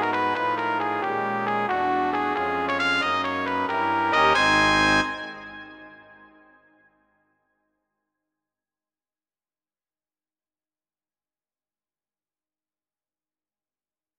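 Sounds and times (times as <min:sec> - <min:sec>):
brass quintet playing: 0:00.0 - 0:06.6.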